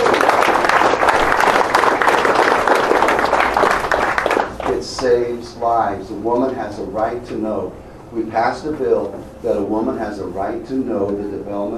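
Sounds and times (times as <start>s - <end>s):
crowd applauding: 0.0s - 5.1s
speech: 5.1s - 11.7s.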